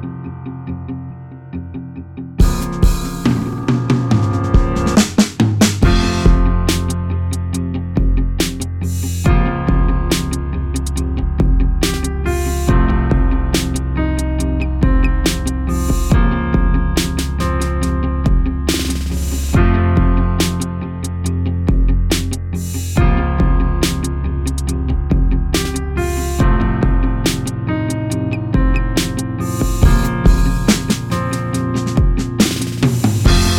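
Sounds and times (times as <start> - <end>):
keyboard playing: 1.9 - 33.5.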